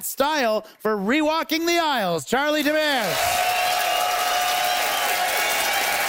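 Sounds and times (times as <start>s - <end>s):
speech: 0.0s - 3.8s
audience clapping: 2.9s - 6.0s
crowd noise: 3.0s - 6.0s.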